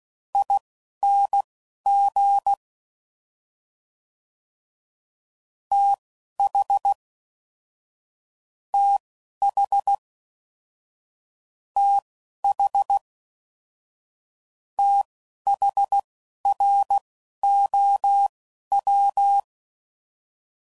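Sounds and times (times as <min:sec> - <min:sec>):
Morse code code groups at 10 WPM: 0:00.4 - 0:02.6, 0:05.7 - 0:07.0, 0:08.8 - 0:10.0, 0:11.8 - 0:13.0, 0:14.8 - 0:19.4.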